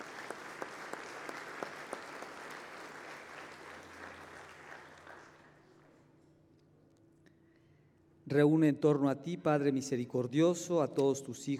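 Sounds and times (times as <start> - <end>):
audience clapping: 0.0 - 6.0
speech: 8.3 - 11.5.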